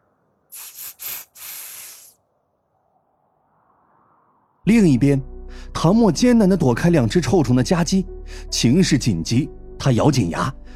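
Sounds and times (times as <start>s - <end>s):
airy sharp hisses: 0.5s - 2.2s
speech: 4.7s - 10.7s.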